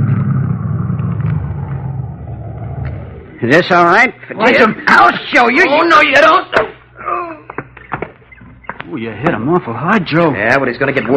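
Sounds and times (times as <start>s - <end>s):
road noise: 0.0s - 3.6s
car engine rumbling: 0.0s - 3.9s
speech: 3.4s - 6.8s, 8.9s - 11.1s.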